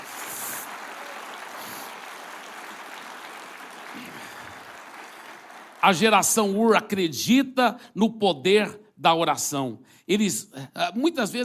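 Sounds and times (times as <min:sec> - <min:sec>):
audience applause: 0:00.0 - 0:06.3
speech: 0:05.8 - 0:11.4.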